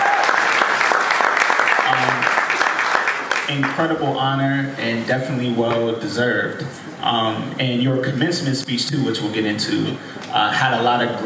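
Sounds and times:
audience applause: 0:00.0 - 0:04.0
speech: 0:03.5 - 0:11.2.

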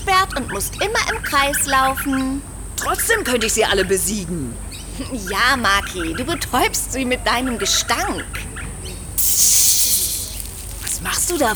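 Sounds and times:
speech: 0:00.2 - 0:08.5, 0:09.2 - 0:09.8, 0:11.3 - 0:11.5
voice imitating a snake hissing: 0:09.2 - 0:11.5.

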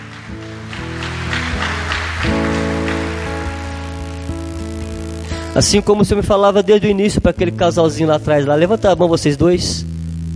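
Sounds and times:
audience applause: 0:00.0 - 0:04.9
sustained droning keyboard chords: 0:00.0 - 0:10.3
speech: 0:05.5 - 0:09.9.

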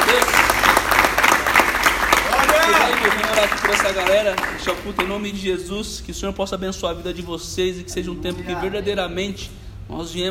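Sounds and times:
audience applause: 0:00.0 - 0:05.2
speech: 0:03.0 - 0:10.2.

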